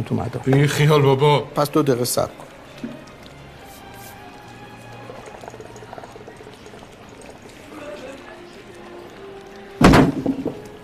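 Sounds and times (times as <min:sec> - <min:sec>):
speech: 0:00.0 - 0:03.0
foot kicking underside of table: 0:09.8 - 0:10.6.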